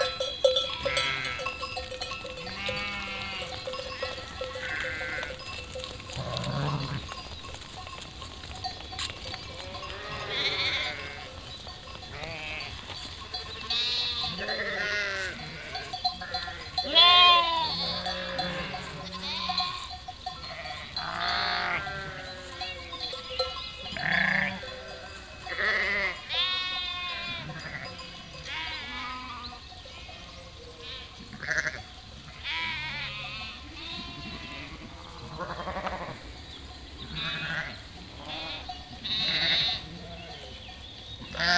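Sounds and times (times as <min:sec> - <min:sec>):
sheep and lambs bleating: 0:00.0 - 0:36.3, 0:37.0 - 0:40.5, 0:41.3 - 0:41.5
rustling of moving animals: 0:00.0 - 0:41.5.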